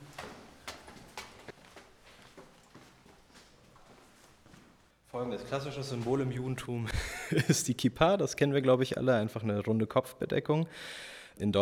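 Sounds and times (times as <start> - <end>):
faint footsteps climbing one floor up to the synagogue of a Liberal Jewish community: 0.0 - 5.0, 5.7 - 6.6
speech: 5.2 - 11.6
laughter: 6.9 - 7.7.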